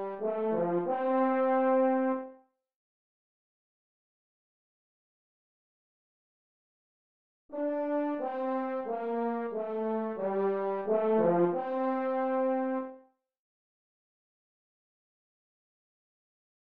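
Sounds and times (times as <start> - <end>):
french horn playing a hymn: 0.0 - 2.3, 7.6 - 13.0.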